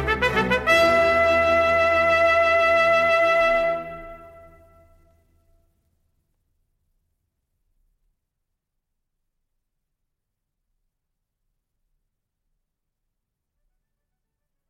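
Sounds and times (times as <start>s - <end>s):
trumpet concerto in E minor, gigue movement: 0.0s - 5.4s.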